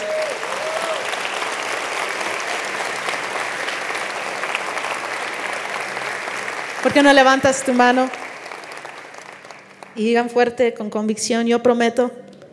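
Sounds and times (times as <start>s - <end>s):
audience applause: 0.0s - 10.0s
speech: 6.8s - 8.2s, 10.0s - 12.2s.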